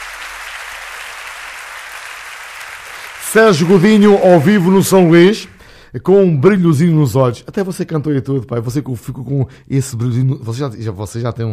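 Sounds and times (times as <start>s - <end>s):
audience applause: 0.0s - 5.6s
speech: 3.3s - 11.5s.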